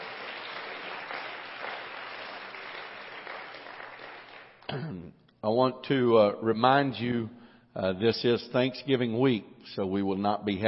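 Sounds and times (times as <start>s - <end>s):
audience hand clapping: 0.0s - 4.7s
speech: 4.7s - 10.6s.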